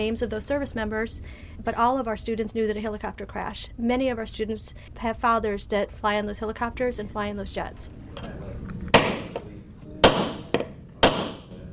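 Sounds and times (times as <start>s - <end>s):
speech: 0.0s - 8.4s
hammering nails while building a mousetrap car: 8.9s - 11.5s.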